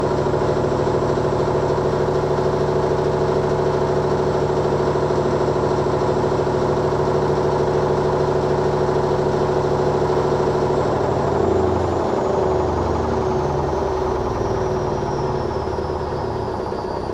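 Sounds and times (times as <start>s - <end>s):
washing machine spin cycle: 0.0s - 17.1s.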